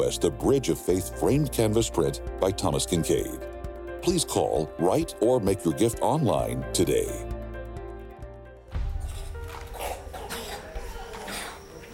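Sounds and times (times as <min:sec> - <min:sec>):
speech: 0:00.0 - 0:07.3
children's deep chest coughing: 0:09.0 - 0:11.8.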